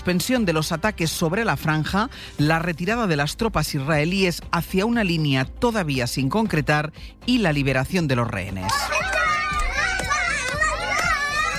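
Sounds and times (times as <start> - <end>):
speech: 0.0 - 9.1
children shouting and cheering in the streets of Gaza: 8.6 - 11.5.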